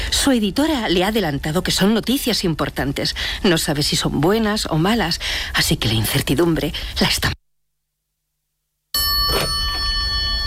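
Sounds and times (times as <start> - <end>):
speech: 0.2 - 7.4
telephone ringing: 9.0 - 10.4.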